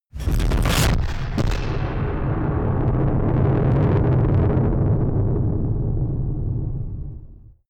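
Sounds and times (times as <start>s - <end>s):
distorted explosions: 0.1s - 7.6s.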